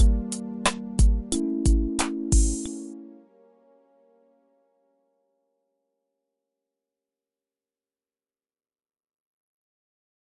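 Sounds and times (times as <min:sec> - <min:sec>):
groove without bass: 0:00.0 - 0:03.5.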